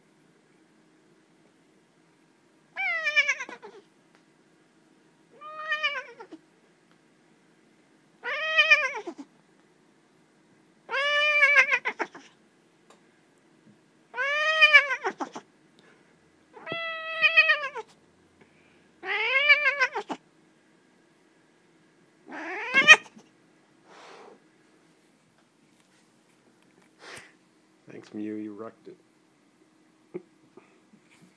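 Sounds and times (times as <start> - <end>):
shaken cat meow: 2.8 - 3.8, 5.4 - 6.4, 8.2 - 9.3, 10.9 - 12.3, 14.1 - 15.5, 16.6 - 17.9, 19.0 - 20.2, 22.3 - 23.2.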